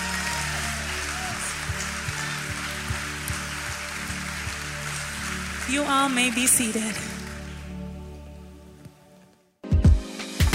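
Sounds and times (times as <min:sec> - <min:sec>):
audience hand clap of praise: 0:00.0 - 0:08.0
speech: 0:05.7 - 0:07.1.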